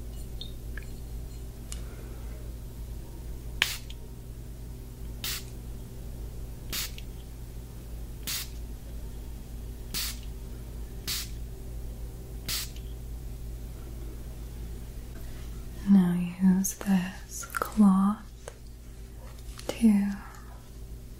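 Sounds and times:
steady low hum: 0.0s - 21.1s
spray bottle spritzing: 3.6s - 3.9s, 5.2s - 5.5s, 6.7s - 7.0s, 8.3s - 8.6s, 10.0s - 10.3s, 11.1s - 11.4s, 12.5s - 12.8s
speech: 16.6s - 17.9s.

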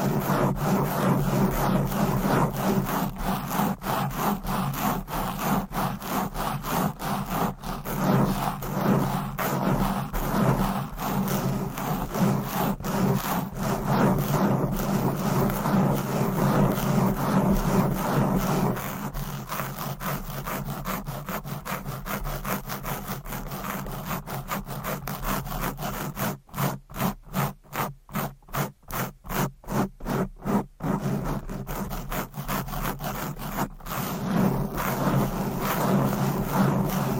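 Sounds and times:
fast aggressive scratching on a microphone: 0.0s - 37.1s.

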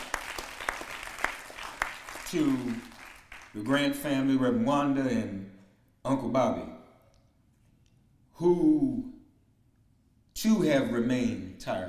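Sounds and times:
crowd clapping: 0.0s - 3.7s
speech: 2.3s - 2.9s, 3.6s - 6.7s, 8.4s - 9.1s, 10.4s - 11.8s.

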